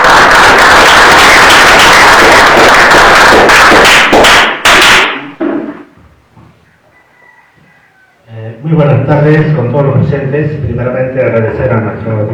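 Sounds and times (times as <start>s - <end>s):
audience applause: 0.0s - 4.7s
speech: 9.3s - 12.3s.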